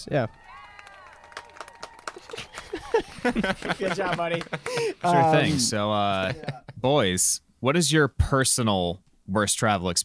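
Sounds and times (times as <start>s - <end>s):
speech: 0.0s - 0.6s, 2.3s - 10.0s
applause clap track: 0.0s - 5.1s
faint cheering or whistling: 0.0s - 5.5s
laughter: 0.0s - 7.0s.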